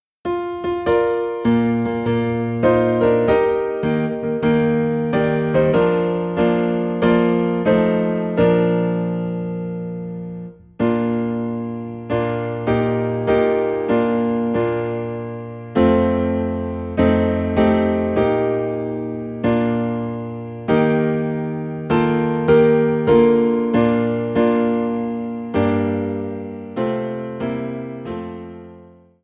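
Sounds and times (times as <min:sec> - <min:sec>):
piano in B flat: 0:00.0 - 0:29.2.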